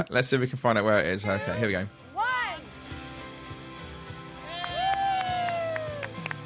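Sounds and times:
speech: 0.0s - 2.0s
drawn-out vocal calls and cheers: 4.4s - 6.2s
sparse clapping from a few people: 4.6s - 6.4s.

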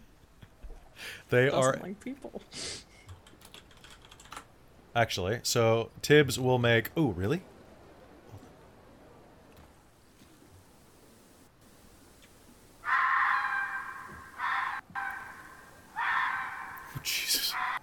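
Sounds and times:
speech: 1.3s - 2.8s, 5.0s - 7.5s
fox screaming: 12.8s - 17.8s.

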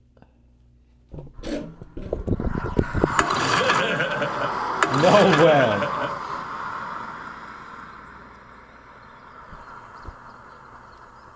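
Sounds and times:
lawnmower running: 3.2s - 6.1s
laughter: 3.2s - 7.2s
speech: 5.0s - 5.9s.

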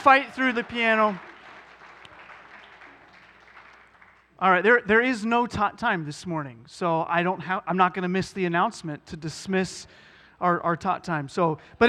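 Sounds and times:
speech: 0.0s - 1.3s, 4.4s - 11.8s
church congregation applauding for the pianist: 0.0s - 4.4s.

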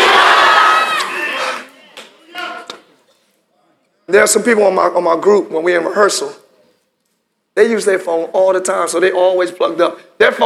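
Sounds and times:
audience shouting the name Jesus: 0.0s - 2.7s
speech: 4.1s - 6.4s, 7.6s - 10.4s.

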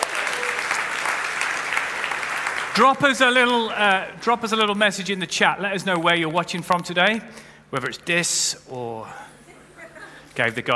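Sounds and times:
church congregation applauding during a Soul Church service: 0.0s - 4.0s
speech: 2.8s - 9.4s, 10.4s - 10.7s.

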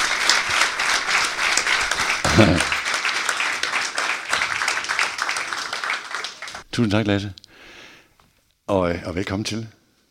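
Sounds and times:
audience applause welcoming two guests on stage: 0.0s - 6.7s
laughter: 2.0s - 3.0s
speech: 2.4s - 2.7s, 6.8s - 7.4s, 8.7s - 9.8s.

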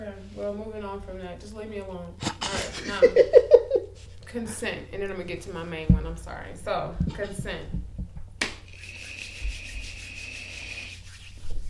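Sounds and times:
speech: 0.2s - 7.9s
laughter: 2.5s - 3.9s
hands rubbing together: 8.7s - 11.6s.

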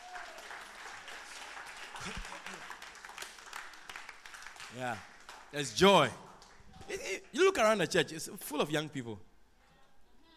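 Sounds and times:
audience clapping: 0.0s - 7.6s
speech: 4.7s - 6.3s, 6.9s - 9.3s.

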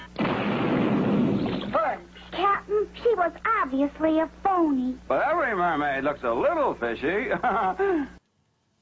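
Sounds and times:
cannon fire from a ship: 0.1s - 1.9s
speech: 3.3s - 8.2s.

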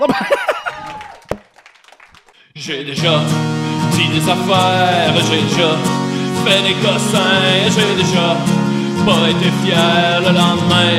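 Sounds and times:
speech: 0.0s - 0.3s, 2.6s - 10.9s
laughter: 0.0s - 1.2s
audience applause: 0.6s - 2.4s.

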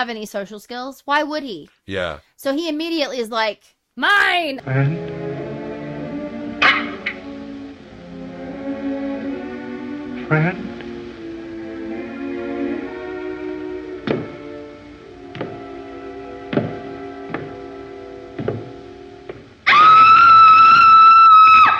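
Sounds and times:
speech: 0.0s - 5.2s, 10.3s - 10.8s
woman screaming in film clip: 19.7s - 21.7s.

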